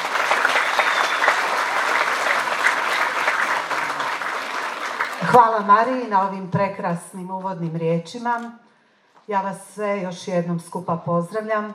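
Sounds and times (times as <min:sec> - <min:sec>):
applause welcoming the principal at a primary school gathering: 0:00.0 - 0:05.4
speech: 0:05.3 - 0:08.6, 0:09.3 - 0:11.7.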